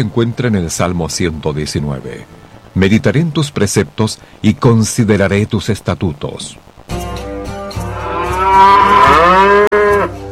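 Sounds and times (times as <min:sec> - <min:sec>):
speech: 0:00.0 - 0:06.9
cow mooing: 0:07.8 - 0:10.2.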